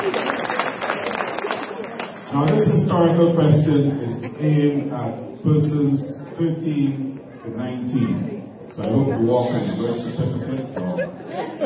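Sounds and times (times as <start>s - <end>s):
audience round of applause: 0.0s - 2.4s
speech: 2.3s - 11.6s
laughter: 9.5s - 11.6s.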